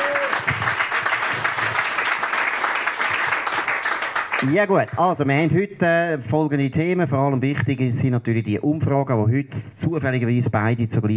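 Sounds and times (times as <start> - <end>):
audience applause: 0.0 - 5.0
speech: 4.4 - 11.1.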